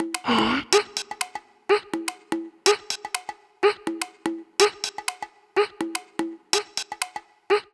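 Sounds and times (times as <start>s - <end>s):
percussion: 0.0s - 7.7s.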